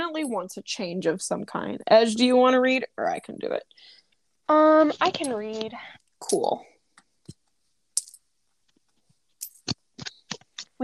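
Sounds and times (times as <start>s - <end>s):
speech: 0.1s - 6.7s
small metal charms clinking: 9.4s - 9.8s.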